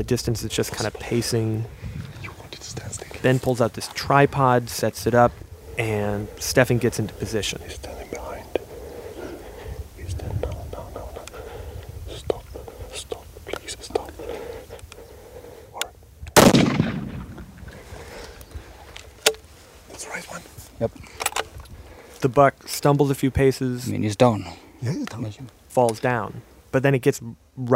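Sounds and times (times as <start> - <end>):
speech: 0.0 - 1.9, 2.7 - 8.0, 22.3 - 27.7
people whispering: 0.0 - 16.0, 19.9 - 21.4, 23.8 - 25.6
rifle shot fired at a buck during a hunt: 16.4 - 17.6.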